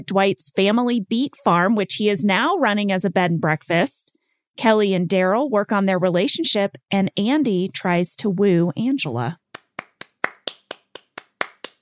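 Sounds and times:
speech: 0.0s - 9.4s
applause: 9.6s - 11.7s.

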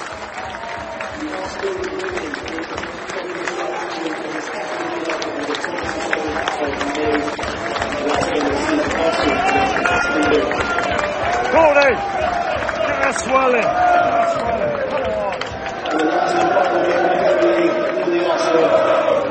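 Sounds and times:
away football crowd roaring in a big stadium: 0.0s - 19.2s
speech: 1.2s - 3.4s, 11.5s - 12.4s, 13.0s - 14.9s.

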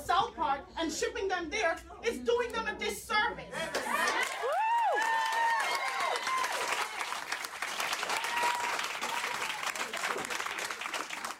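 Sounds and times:
speech: 0.1s - 3.7s
enthusiastic audience applause: 3.7s - 11.3s.

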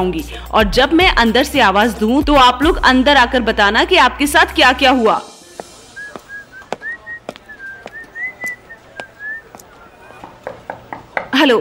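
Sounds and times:
speech: 0.0s - 5.3s, 11.4s - 11.5s
person whistling: 6.0s - 9.5s.

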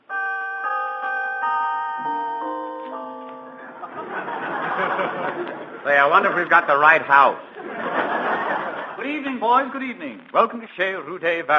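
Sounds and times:
doorbell ringing: 0.0s - 5.3s
laughter: 3.6s - 9.4s
speech: 4.8s - 7.9s, 9.0s - 11.5s.

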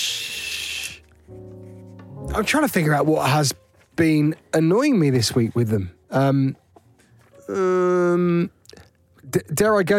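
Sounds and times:
voice imitating steam hiss: 0.0s - 1.0s
speech: 2.3s - 6.6s, 7.5s - 8.6s, 9.2s - 9.9s.

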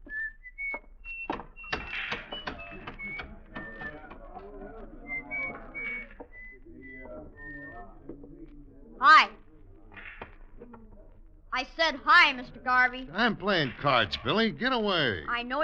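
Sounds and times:
man whistling while walking down the street: 0.0s - 4.2s, 4.8s - 8.1s
speech: 11.8s - 15.6s.

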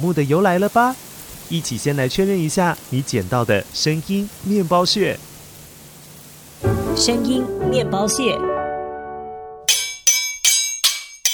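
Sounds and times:
speech: 0.0s - 5.3s, 7.0s - 8.5s
swords clashing: 9.7s - 11.3s.

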